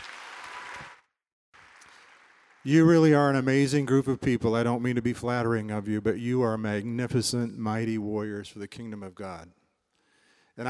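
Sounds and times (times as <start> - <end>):
audience clapping for a graduate at a graduation ceremony: 0.0 - 3.0
speech: 2.6 - 9.6.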